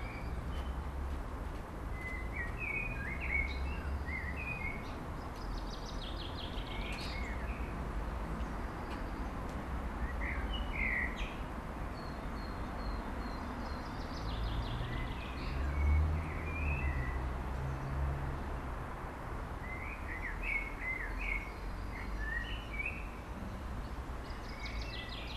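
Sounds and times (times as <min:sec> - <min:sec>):
birds: 0:00.0 - 0:18.6, 0:19.6 - 0:25.3.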